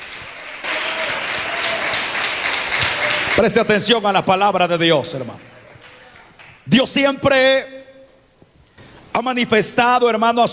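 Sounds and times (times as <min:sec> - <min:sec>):
audience applause: 0:00.0 - 0:06.7
speech: 0:03.4 - 0:05.7, 0:06.7 - 0:07.8, 0:09.2 - 0:10.5.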